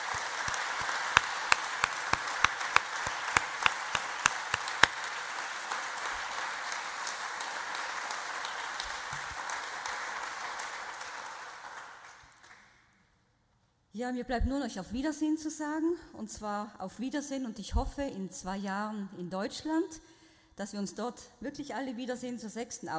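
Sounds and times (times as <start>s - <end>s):
audience applause: 0.0s - 12.6s
speech: 14.0s - 22.9s.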